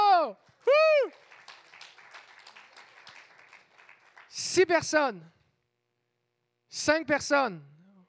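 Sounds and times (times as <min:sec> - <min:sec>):
audience applause: 0:00.6 - 0:04.3
speech: 0:04.6 - 0:05.4, 0:06.8 - 0:07.8.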